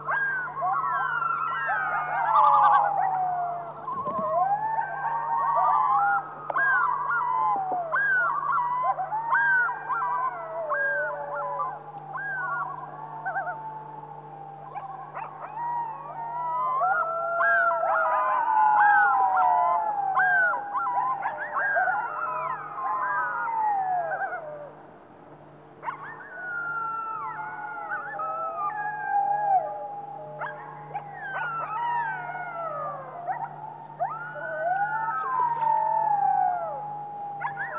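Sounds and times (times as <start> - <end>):
loon wailing during a thunderstorm: 0.1 - 24.7, 25.8 - 37.7.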